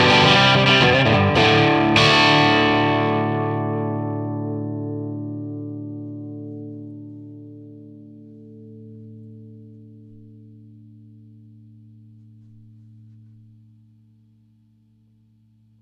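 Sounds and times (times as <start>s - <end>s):
dirty Gretsch guitar through a Trinity Triwatt amp: 0.0s - 11.0s.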